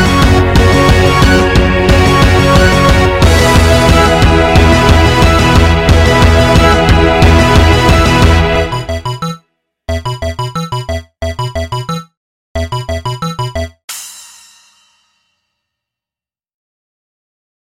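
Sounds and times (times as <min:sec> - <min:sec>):
electro music: 0:00.0 - 0:14.0.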